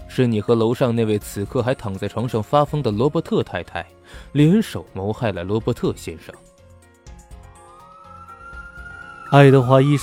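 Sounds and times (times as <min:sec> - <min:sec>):
speech: 0:00.2 - 0:06.5, 0:09.3 - 0:10.0
police siren wailing: 0:07.5 - 0:10.0.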